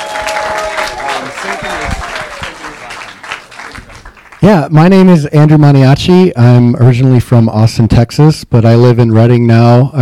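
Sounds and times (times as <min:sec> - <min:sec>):
raised voices: 0:00.0 - 0:03.9
crowd applause welcoming a team onto a stage: 0:00.0 - 0:04.7
speech: 0:04.4 - 0:09.9.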